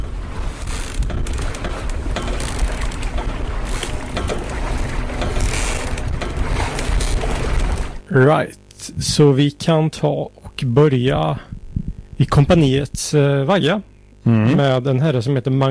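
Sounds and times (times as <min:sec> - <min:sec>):
outboard boat motor running: 0:00.0 - 0:08.0
speech: 0:08.2 - 0:11.5, 0:12.2 - 0:15.6.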